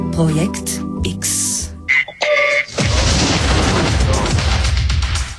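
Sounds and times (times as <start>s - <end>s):
speech: 0.2s - 1.7s
short electronic tones: 1.9s - 2.7s
loud rumbling crackling explosion sound effect: 2.7s - 5.3s.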